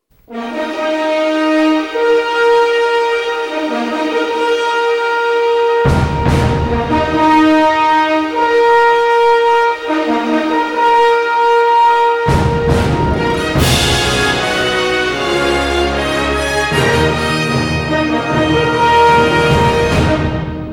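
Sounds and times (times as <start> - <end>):
fanfare: 0.3 - 20.7.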